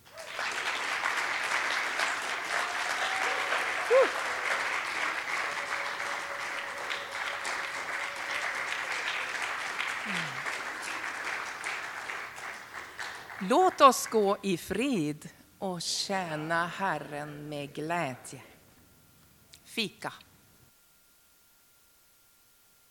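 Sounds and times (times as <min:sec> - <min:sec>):
applause: 0:00.0 - 0:14.3
speech: 0:13.5 - 0:18.5, 0:19.8 - 0:20.3.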